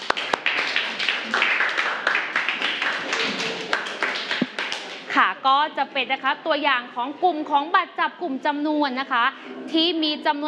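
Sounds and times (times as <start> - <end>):
students clapping in a classroom: 0.0 - 5.1
speech: 5.2 - 10.4.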